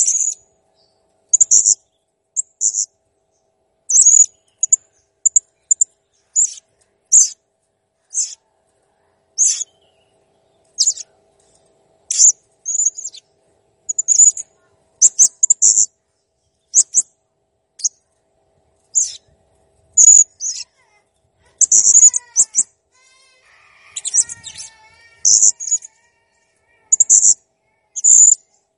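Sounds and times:
blue-crowned hanging parrot chirps and squeaky trills: 0.0 - 0.4, 1.3 - 1.8, 2.4 - 2.9, 3.9 - 7.4, 8.0 - 8.5, 9.4 - 9.9, 10.7 - 11.1, 12.1 - 13.3, 13.9 - 16.0, 16.7 - 17.1, 17.8 - 18.0, 18.9 - 19.3, 20.0 - 28.6.

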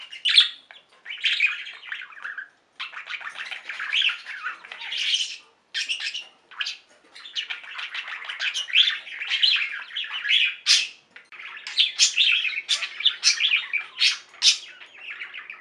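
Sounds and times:
budgerigar chatter: 0.0 - 15.6.

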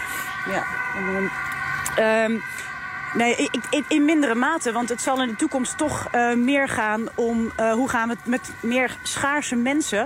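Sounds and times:
emergency siren: 0.0 - 10.0
traffic passing by: 0.0 - 10.0
speech: 0.4 - 10.0.

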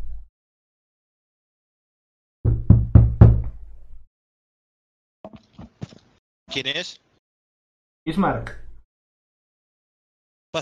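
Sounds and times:
knocking on a room door: 2.5 - 3.6
speech: 6.5 - 7.1, 8.0 - 8.6.

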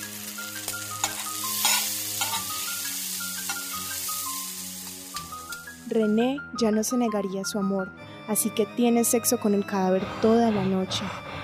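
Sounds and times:
meat steaks frying in a pan: 0.0 - 5.9
speech: 5.9 - 11.2.

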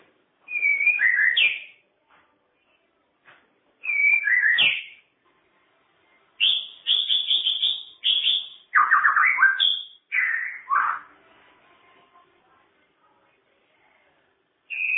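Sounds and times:
songbird singing: 0.4 - 1.8, 3.8 - 5.0, 6.4 - 11.1, 14.7 - 14.9.

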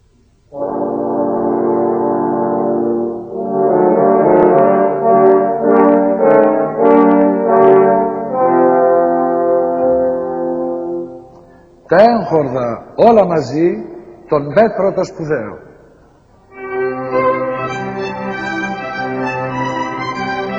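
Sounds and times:
three horns playing a musical theme: 0.5 - 12.4, 16.5 - 20.5
speech: 12.3 - 15.7.

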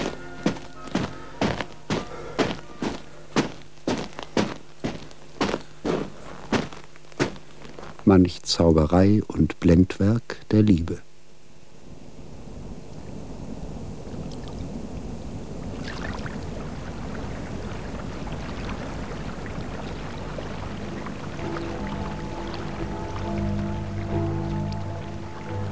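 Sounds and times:
river water waves lapping: 0.0 - 5.0, 12.5 - 25.7
speech: 8.1 - 11.1.

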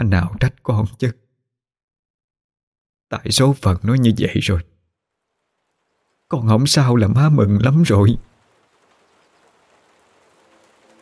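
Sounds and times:
speech: 0.0 - 1.2, 3.1 - 4.7, 6.3 - 8.3
heavy pouring rain: 5.0 - 11.0.

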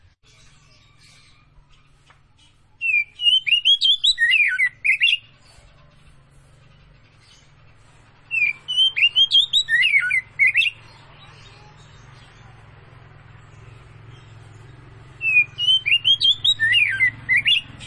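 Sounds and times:
Oriental magpie-robin singing slurred whistles: 2.8 - 5.3, 8.3 - 10.8, 15.2 - 17.8.

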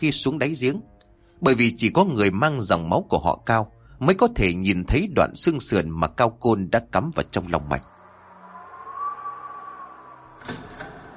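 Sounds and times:
speech: 0.0 - 7.9
door panels creaking on hinges in wind: 9.8 - 11.1.

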